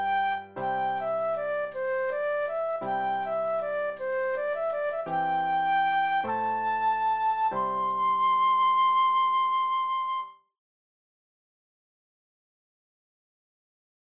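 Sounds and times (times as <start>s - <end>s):
flute solo: 0.0s - 10.4s.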